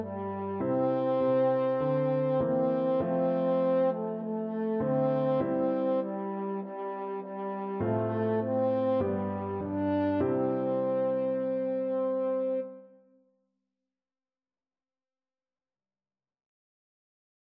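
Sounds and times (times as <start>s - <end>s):
french horn playing a patriotic song: 0.0s - 13.1s.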